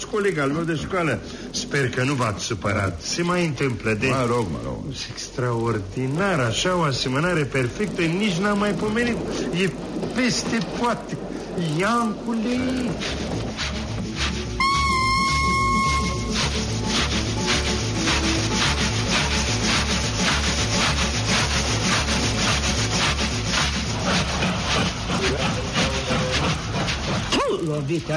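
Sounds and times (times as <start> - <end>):
old train rattling and clattering along: 0.0 - 28.1
speech: 0.1 - 13.2, 28.0 - 28.1
brief high tone: 14.6 - 16.3.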